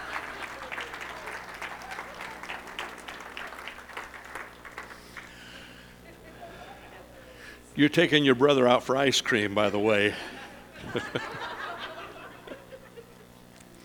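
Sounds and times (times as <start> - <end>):
round of applause: 0.0 - 5.7
laughter: 0.0 - 7.5, 9.6 - 13.8
speech: 7.8 - 11.6.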